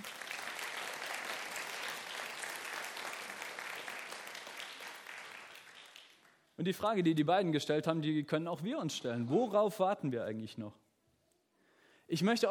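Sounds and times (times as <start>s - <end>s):
audience applause: 0.0s - 6.4s
speech: 6.6s - 10.8s, 12.1s - 12.4s.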